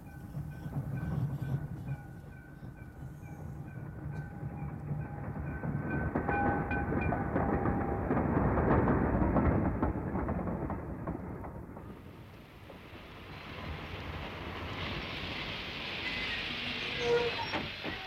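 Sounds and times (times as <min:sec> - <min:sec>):
train rumbling while arriving at the terminal station: 0:00.0 - 0:18.0
train wheels squealing: 0:16.0 - 0:18.0.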